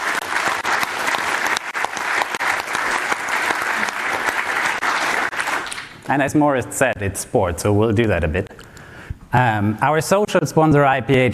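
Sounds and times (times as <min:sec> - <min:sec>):
audience applause: 0:00.0 - 0:06.0
speech: 0:06.1 - 0:08.5, 0:09.3 - 0:11.3.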